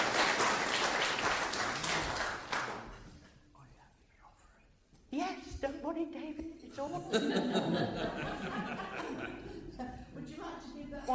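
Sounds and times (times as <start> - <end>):
audience clapping: 0.0 - 3.1
speech: 5.6 - 8.9, 10.9 - 11.1
laughter: 6.8 - 10.2.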